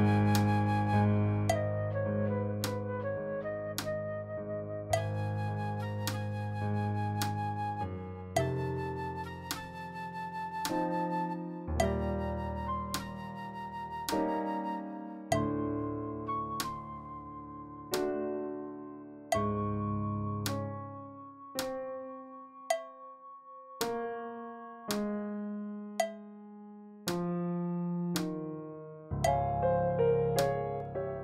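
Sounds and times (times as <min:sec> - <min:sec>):
flute: 0:00.0 - 0:18.1
piano: 0:00.0 - 0:31.2.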